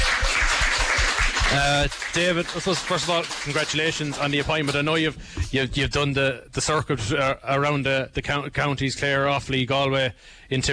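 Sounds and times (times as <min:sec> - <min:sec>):
audience applause: 0:00.0 - 0:05.0
speech: 0:01.5 - 0:10.7.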